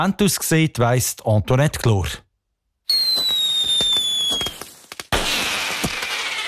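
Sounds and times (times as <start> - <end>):
speech: 0.0 - 2.2
fireworks exploding: 2.9 - 6.4.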